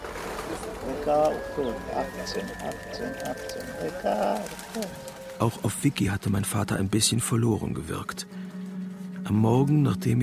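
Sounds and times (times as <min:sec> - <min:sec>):
pigeons cooing on the central square of Kavala: 0:00.0 - 0:05.6
speech: 0:01.0 - 0:08.4, 0:09.2 - 0:10.2.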